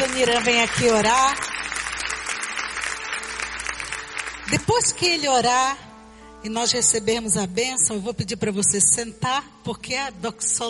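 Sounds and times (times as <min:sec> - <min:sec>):
crowd applauding in a large room: 0:00.0 - 0:04.5
speech: 0:00.2 - 0:01.5, 0:04.5 - 0:10.6.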